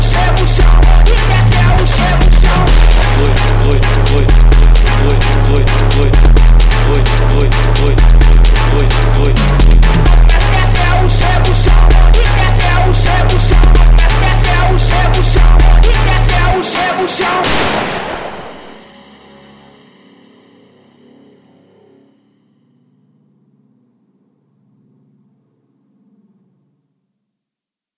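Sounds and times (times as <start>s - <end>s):
phonk funk music: 0.0s - 19.1s.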